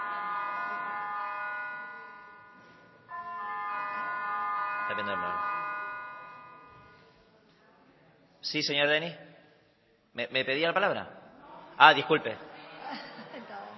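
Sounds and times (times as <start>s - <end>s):
parliament chamber bell ringing: 0.0s - 7.1s
speech: 4.9s - 5.7s, 8.4s - 9.3s, 10.2s - 11.2s, 11.8s - 12.5s.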